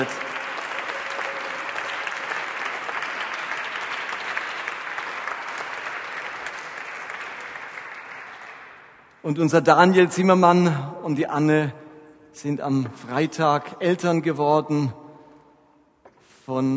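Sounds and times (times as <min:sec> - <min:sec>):
audience applause: 0:00.0 - 0:09.0
speech: 0:09.2 - 0:11.8, 0:12.4 - 0:15.0, 0:16.5 - 0:16.7.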